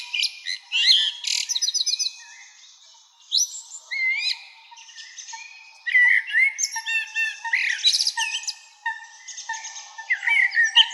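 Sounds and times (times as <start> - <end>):
Common blackbird song: 0.0 - 10.9.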